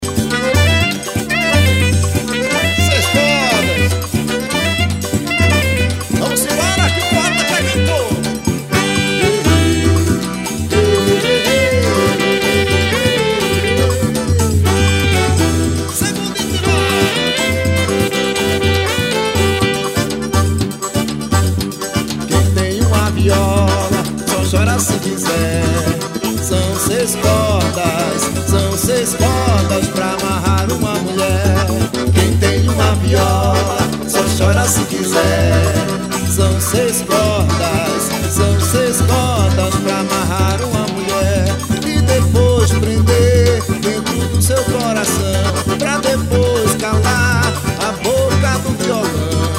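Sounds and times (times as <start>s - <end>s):
six-string guitar: 0.0s - 49.5s.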